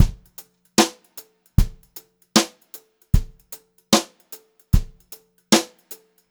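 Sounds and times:
brushed drum loops: 0.0s - 0.9s, 1.6s - 2.5s, 3.2s - 4.1s, 4.8s - 5.7s.

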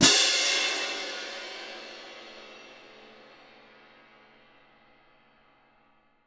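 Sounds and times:
cymbal percussion: 0.0s - 5.8s.

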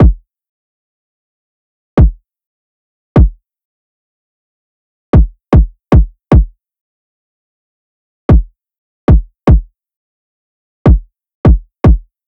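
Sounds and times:
kick drum loop: 0.0s - 0.2s, 2.0s - 2.2s, 3.2s - 3.4s, 5.2s - 6.5s, 8.3s - 8.5s, 9.1s - 9.7s, 10.9s - 12.1s.

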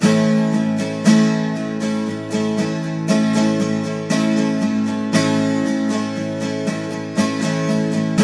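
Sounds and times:
twelve-string guitar A sharp major chord: 0.0s - 8.2s.

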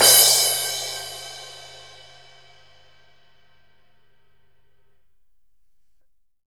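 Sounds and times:
fifteen-inch crash cymbal: 0.0s - 3.3s.

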